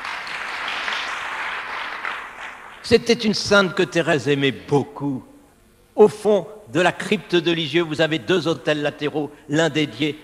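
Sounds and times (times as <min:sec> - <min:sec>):
audience applause: 0:00.0 - 0:02.8
speech: 0:02.9 - 0:05.3, 0:06.0 - 0:10.2.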